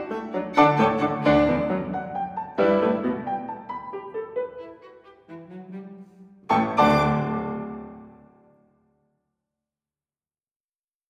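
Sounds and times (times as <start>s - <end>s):
trio playing a scherzo: 0.0s - 8.2s.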